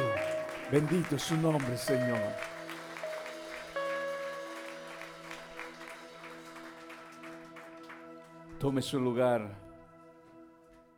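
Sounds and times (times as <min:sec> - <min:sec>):
audience applauding: 0:00.0 - 0:08.7
speech: 0:00.7 - 0:02.5, 0:08.6 - 0:09.7.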